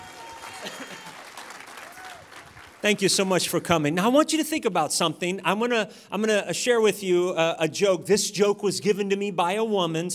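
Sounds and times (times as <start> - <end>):
audience applause for the worship team: 0.0 - 3.4
speech: 2.8 - 10.1.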